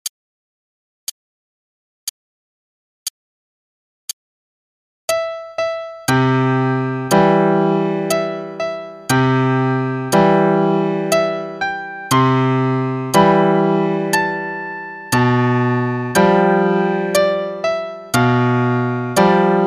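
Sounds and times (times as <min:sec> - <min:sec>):
lullaby in broken chords: 0:05.1 - 0:19.6.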